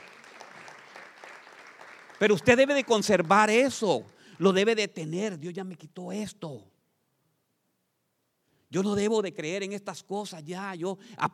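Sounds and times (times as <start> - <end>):
audience applauding: 0.0 - 4.7
speech: 2.2 - 6.7, 8.7 - 11.3.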